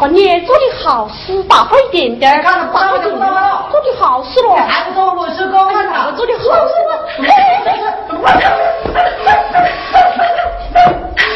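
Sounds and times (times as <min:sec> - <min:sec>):
speech: 0:00.0 - 0:10.0
steady hum: 0:00.0 - 0:11.3
laughter: 0:06.4 - 0:11.3
dog barking: 0:08.2 - 0:11.1.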